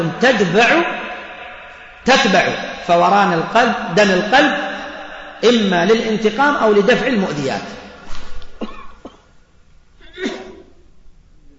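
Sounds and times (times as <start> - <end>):
speech: 0.0 - 1.0, 2.0 - 4.7, 5.4 - 7.8
person sneezing during an Arabic religious lecture: 10.0 - 10.8.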